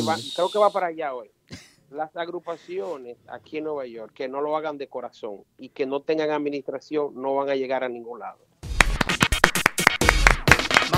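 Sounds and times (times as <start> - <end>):
speech: 0.0 - 8.5
hand claps: 8.7 - 10.9.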